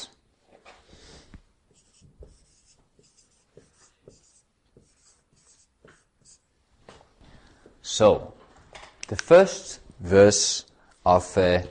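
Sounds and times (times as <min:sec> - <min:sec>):
text being written by hand: 0:01.6 - 0:06.5
speech: 0:08.0 - 0:08.4, 0:09.1 - 0:11.6.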